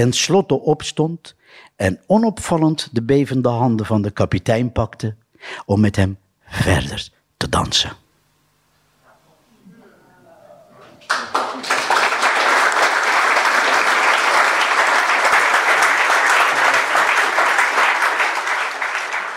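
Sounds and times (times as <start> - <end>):
speech: 0.0 - 8.0
enthusiastic audience applause: 11.0 - 19.3.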